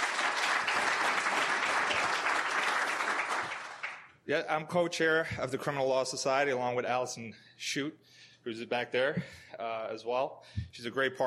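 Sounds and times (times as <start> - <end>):
audience applause: 0.0 - 4.1
speech: 4.3 - 11.2.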